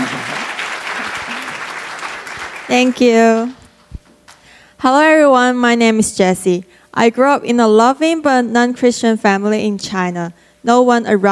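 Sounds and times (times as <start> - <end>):
audience applause at a church gathering: 0.0 - 3.6
speech: 2.7 - 3.6, 4.8 - 11.2.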